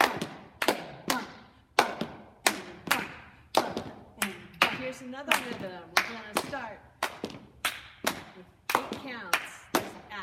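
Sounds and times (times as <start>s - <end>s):
gulla clap rhythmic hand clapping in a dance routine: 0.0s - 10.2s
speech: 5.0s - 6.9s, 8.4s - 9.6s.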